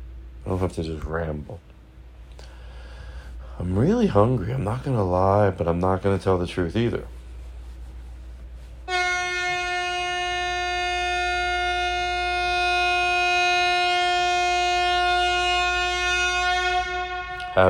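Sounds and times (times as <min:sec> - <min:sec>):
speech: 0:00.4 - 0:01.7, 0:03.6 - 0:07.2
horn honk: 0:08.8 - 0:17.6.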